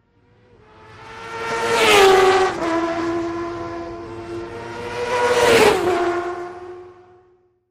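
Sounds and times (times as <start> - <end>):
motorcycles road racing: 0.1 - 7.2.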